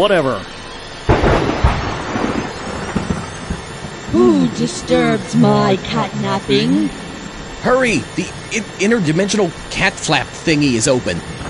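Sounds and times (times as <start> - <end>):
speech: 0.0 - 0.6, 4.1 - 7.0, 7.6 - 11.4
generators powering up: 0.0 - 11.4.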